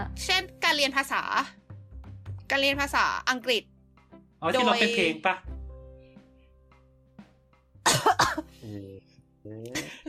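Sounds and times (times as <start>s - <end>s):
speech: 0.2s - 1.6s, 2.5s - 3.7s, 4.4s - 5.5s, 8.0s - 10.0s
harsh coughs from someone with a cold: 7.8s - 8.6s.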